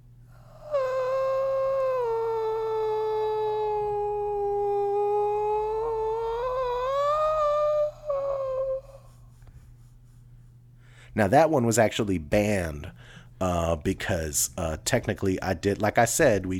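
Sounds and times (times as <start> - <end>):
recorded scream of a person drowning in a well: 0.6 - 8.8
speech: 11.2 - 16.5.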